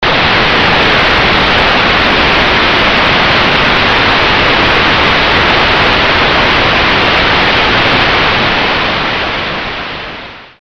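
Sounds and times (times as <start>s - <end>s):
raging static: 0.0s - 10.6s.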